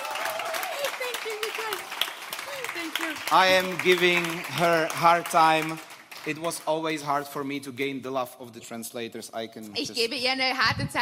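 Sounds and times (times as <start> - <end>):
audience clapping: 0.0 - 7.4
speech: 2.6 - 11.0.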